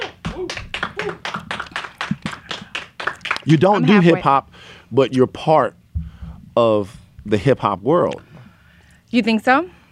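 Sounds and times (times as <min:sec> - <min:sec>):
people clapping: 0:00.0 - 0:04.4
speech: 0:03.4 - 0:05.8, 0:06.6 - 0:08.3, 0:09.1 - 0:09.8.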